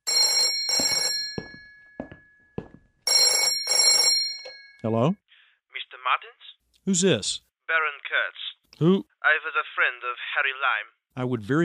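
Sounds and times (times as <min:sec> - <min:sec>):
telephone ringing: 0:00.0 - 0:02.3, 0:03.0 - 0:04.8
speech: 0:04.8 - 0:05.2, 0:06.9 - 0:11.6.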